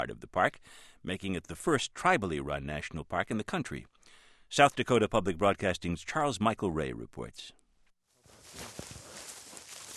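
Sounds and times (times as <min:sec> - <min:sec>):
speech: 0:00.0 - 0:07.6
man's crunching footsteps in the South Dakota Badlands: 0:08.2 - 0:09.9.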